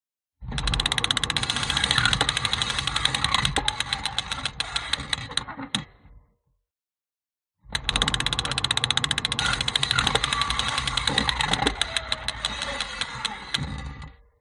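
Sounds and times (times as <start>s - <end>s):
broken bike wheel ratchet spinning on contact mic: 0.6s - 5.1s, 7.8s - 13.5s.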